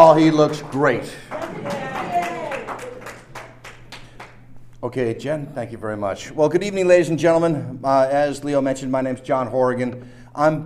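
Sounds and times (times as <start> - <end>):
speech: 0.0 - 1.9, 4.8 - 10.6
audience applause: 0.2 - 4.4.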